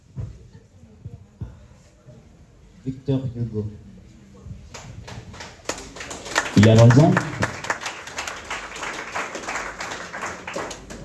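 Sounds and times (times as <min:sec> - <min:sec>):
speech: 0:02.8 - 0:03.9, 0:06.6 - 0:07.3
audience applause: 0:05.3 - 0:11.0.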